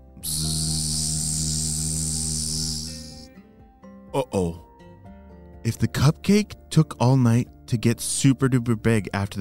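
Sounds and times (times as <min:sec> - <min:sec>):
loud buzzing of a fly: 0:00.0 - 0:03.4
speech: 0:04.1 - 0:04.6, 0:05.7 - 0:09.3.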